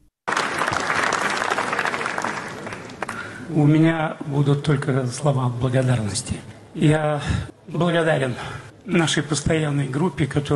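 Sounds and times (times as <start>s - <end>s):
audience ovation at film premiere: 0.3s - 3.4s
speech: 3.5s - 10.5s.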